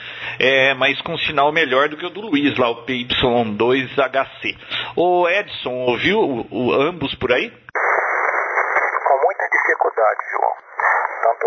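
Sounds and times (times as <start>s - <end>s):
speech: 0.4s - 7.6s
narrow-band radio static: 7.8s - 11.4s
faint unintelligible ham radio voice: 8.8s - 11.4s.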